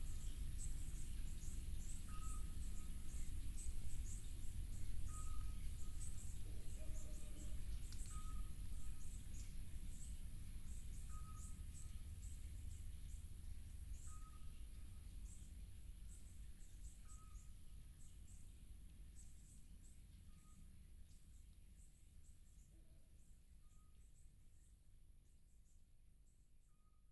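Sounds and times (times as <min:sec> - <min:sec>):
insects shimmering on a summer night in Montferrat, Italy: 0:00.0 - 0:21.2.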